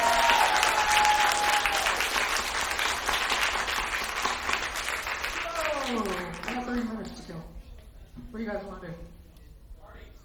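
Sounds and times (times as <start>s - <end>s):
round of applause: 0.0s - 7.3s.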